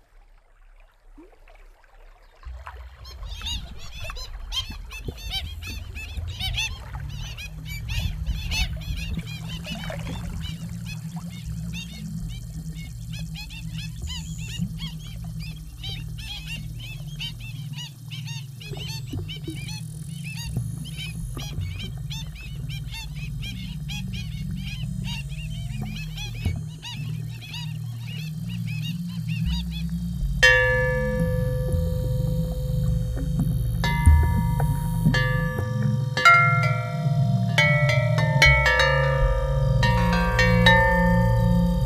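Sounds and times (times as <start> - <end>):
kakī black stilt calling: 3.0 - 41.8
instrument devised for an exhibition: 30.4 - 41.8.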